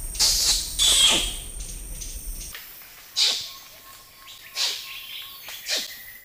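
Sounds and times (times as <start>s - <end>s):
low rumbling noise: 0.0s - 2.5s
orangutan kiss squeaks: 0.2s - 1.4s, 4.6s - 4.8s.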